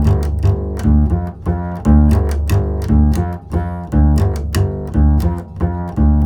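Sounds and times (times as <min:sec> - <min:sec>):
bass in G: 0:00.0 - 0:06.2.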